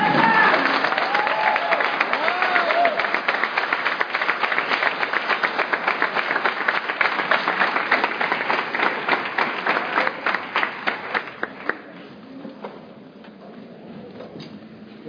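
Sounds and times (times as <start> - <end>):
audience applause: 0.0 - 12.0.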